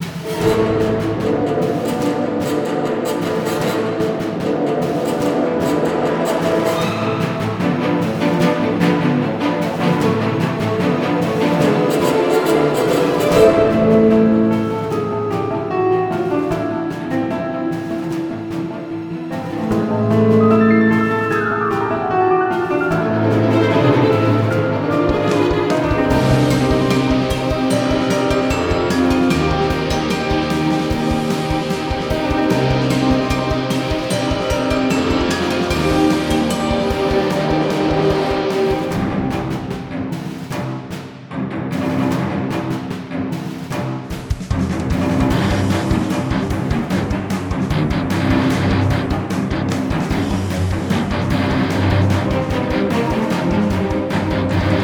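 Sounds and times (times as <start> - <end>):
boss fight music loop: 0.0 - 15.7, 16.4 - 54.8.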